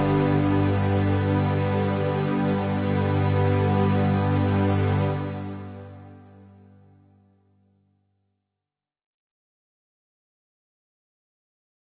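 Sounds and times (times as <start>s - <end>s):
instrumental music: 0.0s - 7.2s.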